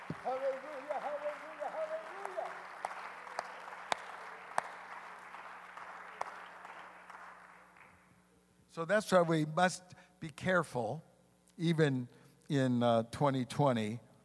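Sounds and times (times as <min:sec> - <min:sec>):
audience clapping hands: 0:00.0 - 0:08.2
speech: 0:08.8 - 0:14.1.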